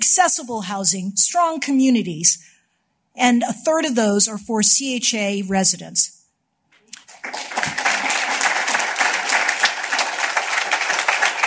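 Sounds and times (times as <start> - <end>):
speech: 0.1 - 2.5, 3.2 - 6.2
crowd applause: 7.0 - 11.4.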